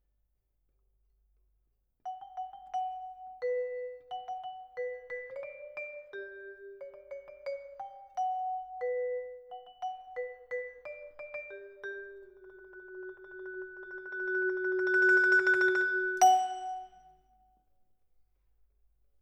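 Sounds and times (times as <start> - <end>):
vibraphone: 2.1 - 17.4.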